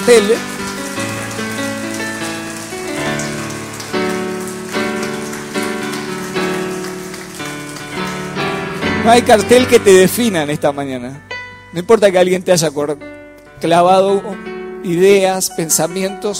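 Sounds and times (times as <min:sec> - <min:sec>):
speech: 0:00.0 - 0:00.6, 0:09.0 - 0:16.3
audience applause: 0:00.0 - 0:09.8
sustained music chords: 0:00.0 - 0:16.3.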